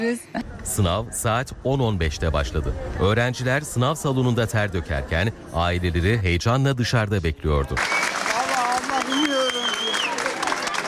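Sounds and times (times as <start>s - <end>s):
speech: 0.0s - 8.4s
families applauding students after an exam: 7.7s - 10.8s.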